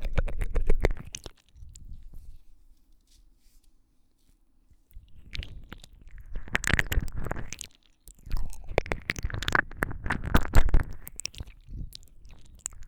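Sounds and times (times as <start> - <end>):
deep ear licking ASMR: 0.0 - 2.1, 5.0 - 12.8.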